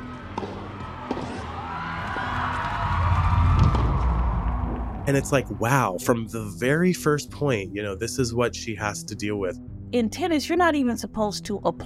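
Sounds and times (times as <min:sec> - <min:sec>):
tennis crowd cheering and shouting: 0:00.0 - 0:05.7
speech: 0:05.1 - 0:11.8.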